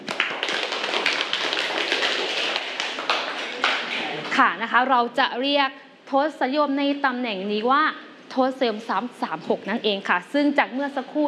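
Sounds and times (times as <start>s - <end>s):
class of students clapping: 0.0s - 4.4s
speech: 4.4s - 11.2s.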